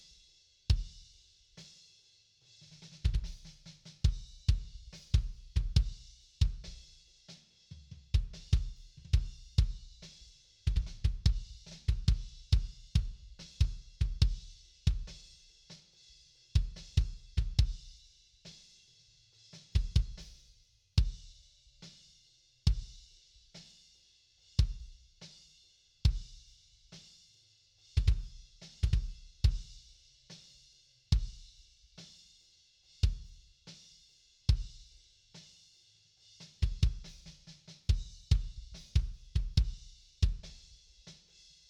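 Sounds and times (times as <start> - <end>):
kick drum: 3.0 - 3.4, 4.0 - 6.8, 8.0 - 10.0, 10.6 - 15.2, 16.6 - 17.9, 19.8 - 20.3, 21.0 - 21.4, 22.7 - 23.0, 26.1 - 26.4, 28.0 - 29.8, 31.1 - 31.5, 34.5 - 34.8, 36.6 - 37.3, 37.9 - 40.7.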